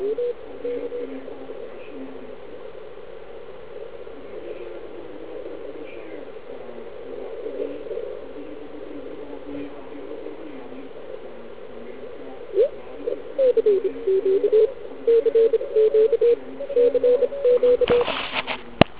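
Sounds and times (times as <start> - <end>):
CW morse code scan: 12.5 - 18.2.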